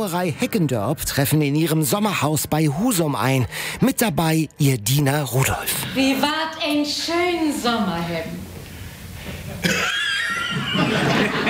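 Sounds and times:
speech: 0.0s - 8.5s, 9.2s - 10.0s, 10.7s - 11.4s
laughter: 9.4s - 11.4s
man coughing: 9.6s - 10.2s.

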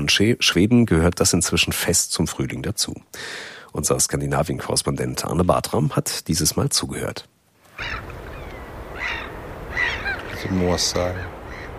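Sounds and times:
speech: 0.0s - 8.1s, 10.4s - 11.4s
low rumble of waves washing: 7.6s - 11.7s
gulls calling over waves: 7.7s - 11.7s.

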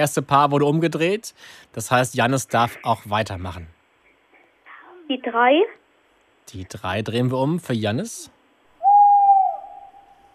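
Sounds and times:
speech: 0.0s - 3.8s, 5.1s - 5.8s, 6.5s - 8.4s
tawny owl hooting: 8.8s - 10.3s.

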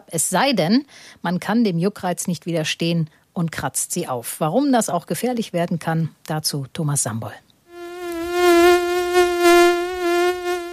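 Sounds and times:
speech: 0.1s - 7.5s
mosquito buzzing in flight: 7.7s - 10.7s.

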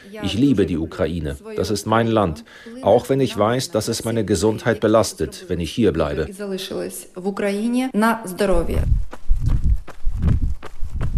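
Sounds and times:
speech: 0.0s - 9.2s
slow jogging footsteps on an asphalt forest path: 8.9s - 11.1s.

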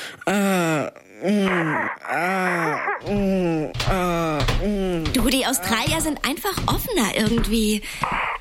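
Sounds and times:
brief breaths and gasps: 0.0s - 5.1s, 7.8s - 8.3s
voice imitating sex moaning: 0.2s - 5.8s
speech: 4.6s - 8.2s.

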